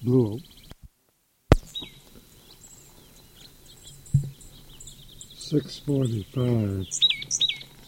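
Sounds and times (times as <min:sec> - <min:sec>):
speech: 0:00.0 - 0:00.6, 0:05.5 - 0:07.1
bird singing: 0:00.0 - 0:00.8, 0:01.5 - 0:07.8.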